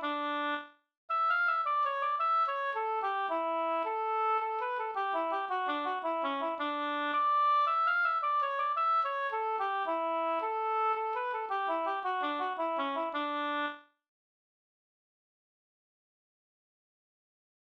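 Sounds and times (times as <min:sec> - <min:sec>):
polska triolpolska folk dance tune: 0:01.1 - 0:13.7.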